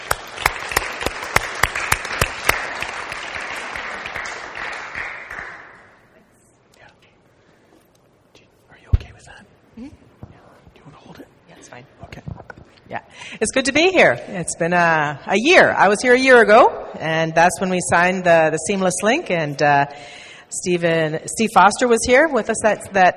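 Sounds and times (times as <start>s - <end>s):
audience applause greeting a speaker before a congregation: 0.0s - 6.0s
soft shuffles and murmurs: 6.1s - 12.8s
speech: 13.4s - 23.1s.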